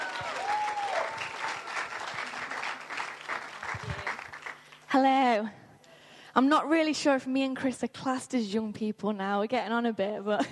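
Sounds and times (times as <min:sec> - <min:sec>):
audience applause welcoming a speaker at a church gathering: 0:00.0 - 0:04.8
speech: 0:04.9 - 0:05.6, 0:06.4 - 0:10.5.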